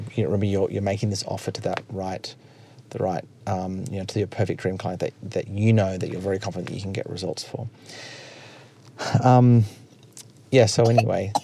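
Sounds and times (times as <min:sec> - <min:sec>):
speech: 0:00.2 - 0:08.2, 0:09.0 - 0:09.8, 0:10.5 - 0:11.4
coughing: 0:10.8 - 0:11.4.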